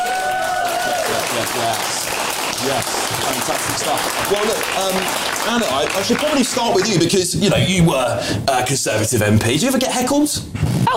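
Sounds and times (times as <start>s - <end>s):
audience applause: 0.0s - 7.4s
speech: 1.4s - 10.9s.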